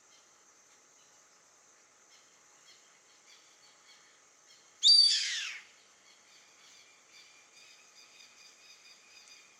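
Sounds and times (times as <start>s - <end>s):
yellow-headed caracara Milvago chimachima raspy scream: 4.8s - 5.6s.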